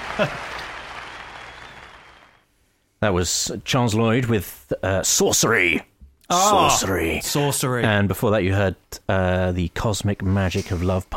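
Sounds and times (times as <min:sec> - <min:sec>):
applause for a magic trick: 0:00.0 - 0:02.4
speech: 0:00.2 - 0:00.6, 0:03.0 - 0:11.1.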